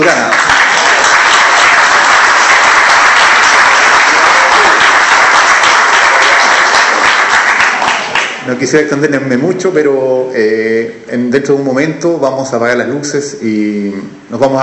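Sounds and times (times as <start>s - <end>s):
warm audience applause: 0.0s - 8.4s
speech: 8.5s - 14.6s.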